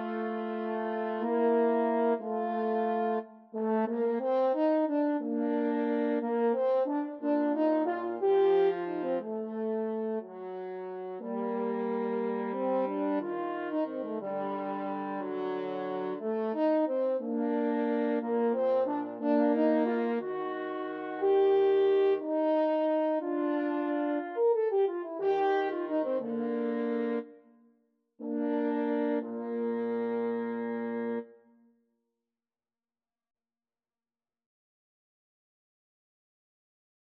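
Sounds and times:
French horn duet playing adagio: 0:00.0 - 0:27.3, 0:28.2 - 0:31.3.

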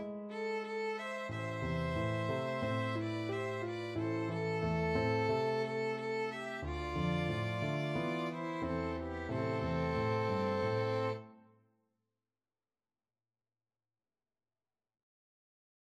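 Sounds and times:
violin duet: 0:00.0 - 0:11.3.

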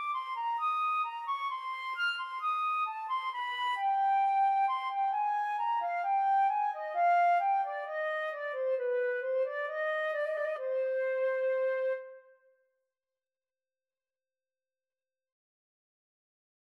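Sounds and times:
flute and clarinet duet playing a bourree: 0:00.0 - 0:12.3.

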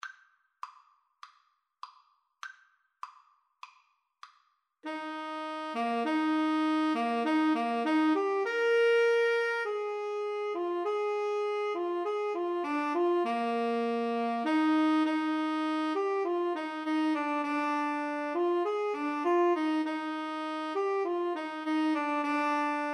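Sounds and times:
tenor saxophone duet: 0:04.8 - 0:22.9.

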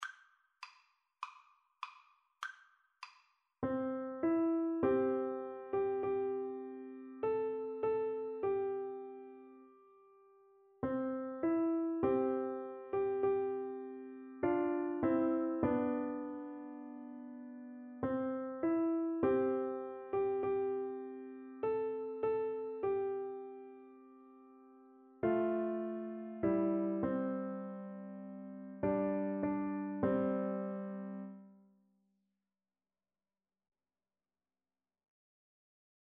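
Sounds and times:
piano duet: 0:03.6 - 0:31.6.

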